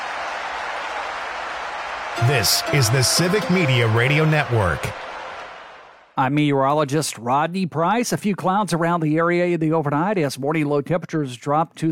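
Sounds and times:
crowd cheering: 0.0 - 6.2
speech: 2.2 - 5.0, 6.2 - 11.9.

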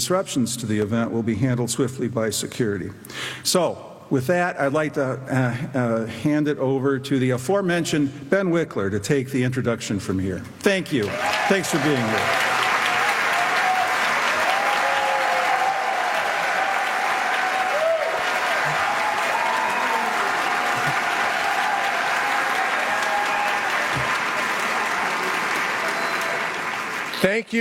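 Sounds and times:
speech: 0.0 - 12.5
audience applause: 11.0 - 27.5.

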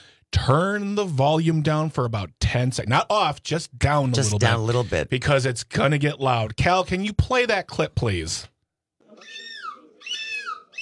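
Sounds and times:
speech: 0.5 - 8.5
human imitating seagull screech: 9.2 - 10.7.

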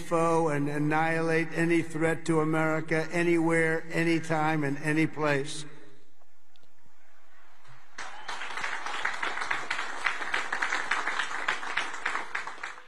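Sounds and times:
speech: 0.1 - 5.7
light applause from crowd: 7.7 - 12.8.

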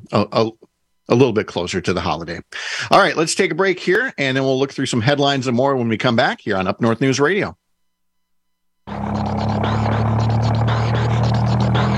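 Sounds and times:
speech: 0.1 - 7.6
car engine running with odd noise: 8.9 - 11.9.

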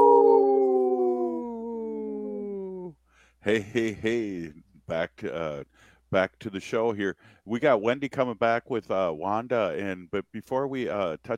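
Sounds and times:
wolf howl: 0.0 - 2.9
speech: 3.4 - 11.3.

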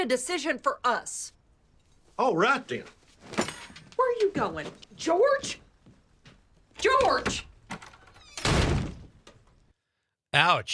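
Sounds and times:
speech: 0.0 - 1.4, 2.2 - 3.4, 4.0 - 5.6, 6.8 - 7.5, 10.3 - 10.7
door slamming in a TV sitcom scene: 6.9 - 9.3.

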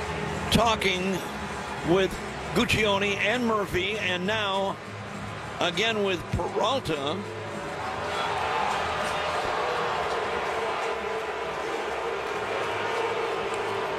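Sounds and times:
speech: 0.5 - 4.9, 5.6 - 7.4
ballpark crowd roaring: 7.2 - 13.9.

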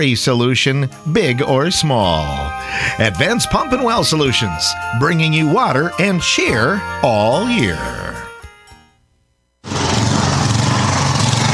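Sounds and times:
speech: 0.0 - 8.0
snowblower gasoline engine running: 9.6 - 11.5.

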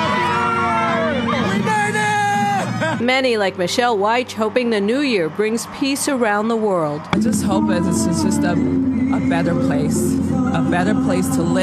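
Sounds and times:
crowd of revellers cheering in Times Square on New Year's Eve: 0.0 - 3.0
speech: 3.1 - 11.6.

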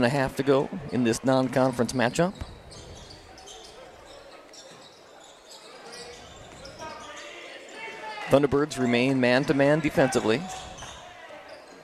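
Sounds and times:
speech: 0.0 - 2.8, 8.3 - 10.6
crowd noise: 0.0 - 11.8
basketball dribbled during a high school game between Baraboo and Lodi: 2.3 - 3.2.

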